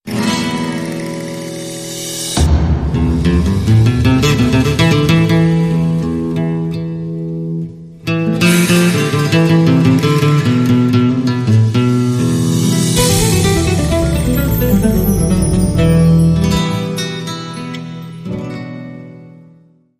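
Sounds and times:
Spanish guitar: 0.0s - 19.9s.

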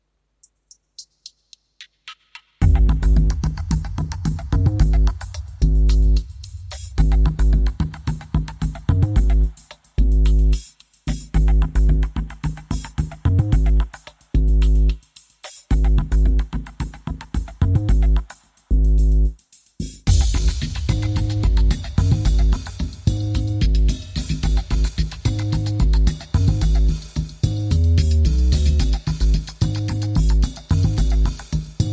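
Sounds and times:
drums: 0.0s - 31.9s
bass: 2.6s - 15.1s, 15.7s - 31.9s.

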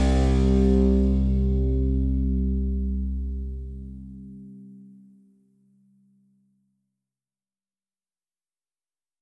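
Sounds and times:
music mix without glockenspiel or lead guitar: 0.0s - 5.0s.

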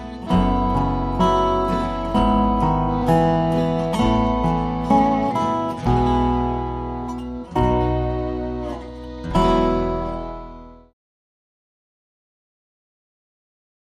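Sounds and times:
folk ballad: 0.0s - 10.9s.

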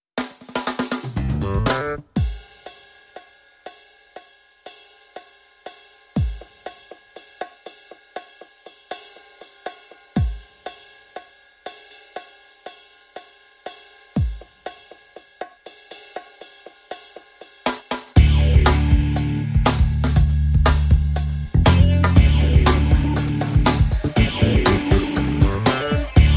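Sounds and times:
funk rhythm section: 0.2s - 2.8s, 16.2s - 26.3s.

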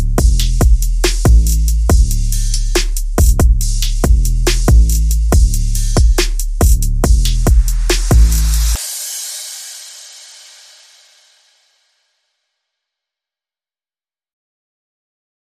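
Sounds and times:
bass: 0.0s - 8.8s
drums: 0.0s - 11.8s.

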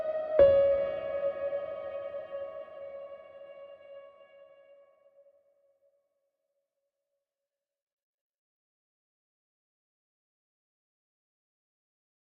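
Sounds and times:
solo piano: 0.0s - 5.0s.

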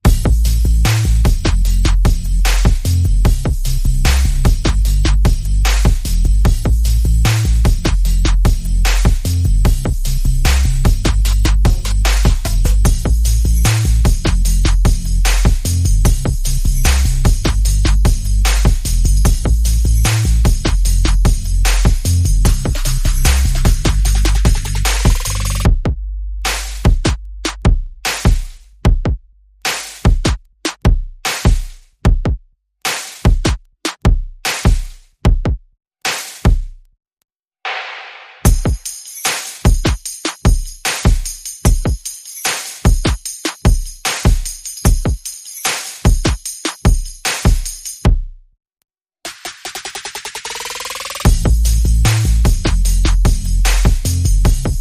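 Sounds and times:
bass: 0.0s - 31.8s, 50.8s - 54.7s
percussion: 0.0s - 36.9s, 37.7s - 48.4s, 49.2s - 54.7s.

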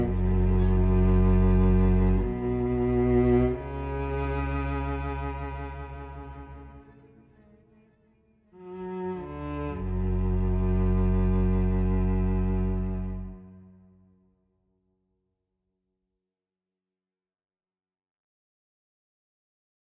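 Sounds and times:
cello: 0.0s - 14.4s.

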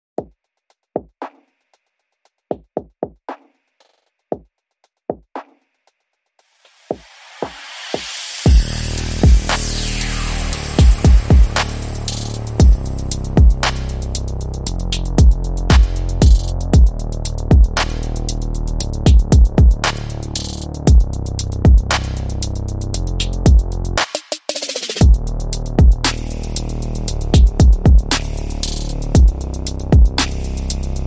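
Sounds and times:
drums: 0.2s - 18.4s, 19.1s - 30.8s
bass: 8.5s - 24.1s, 25.0s - 31.0s.

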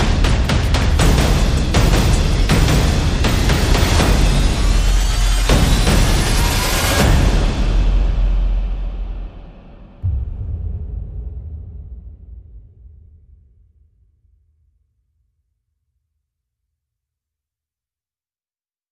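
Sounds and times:
percussion: 0.0s - 14.0s.

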